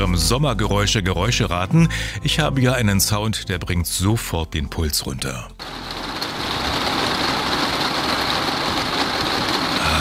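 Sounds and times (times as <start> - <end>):
speech: 0.0 - 5.8
rain drumming on a roof: 5.6 - 10.0.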